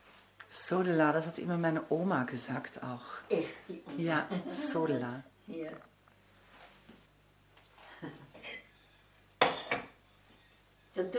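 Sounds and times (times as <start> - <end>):
speech: 0.7 - 5.9, 11.0 - 11.1
plates clinking: 9.4 - 10.0.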